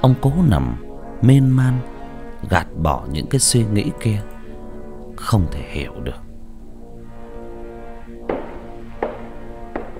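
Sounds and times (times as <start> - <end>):
speech: 0.0 - 4.3, 5.2 - 6.2
wooden clogs striking the floor: 8.3 - 9.9.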